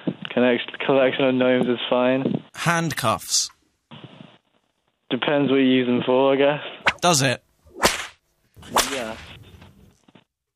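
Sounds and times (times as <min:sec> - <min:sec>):
speech: 0:00.4 - 0:03.6, 0:05.1 - 0:07.4
whip cracking: 0:07.8 - 0:09.4.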